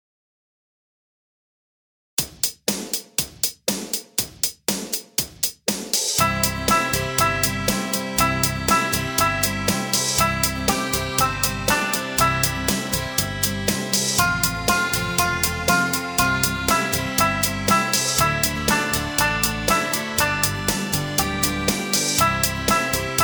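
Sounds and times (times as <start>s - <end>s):
Christmas song: 6.2s - 23.2s.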